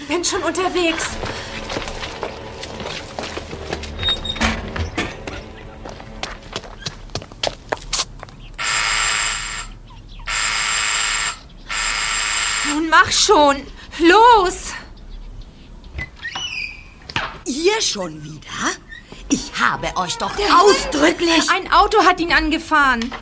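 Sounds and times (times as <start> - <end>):
speech: 0.1 - 1.5, 13.1 - 14.6, 17.8 - 18.7, 19.6 - 23.2
quick footsteps: 0.1 - 8.6
harsh electric doorbell buzzer: 8.6 - 12.9.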